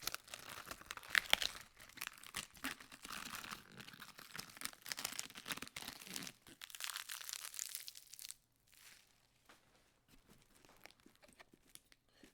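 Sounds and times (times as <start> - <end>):
lettuce leaves peeling: 0.0 - 9.0.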